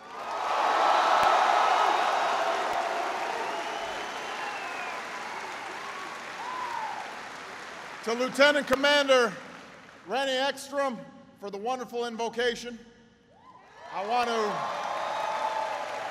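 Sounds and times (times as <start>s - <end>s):
round of applause: 0.0s - 10.1s, 13.7s - 16.0s
speech: 8.1s - 9.5s, 10.1s - 12.9s, 14.0s - 14.8s.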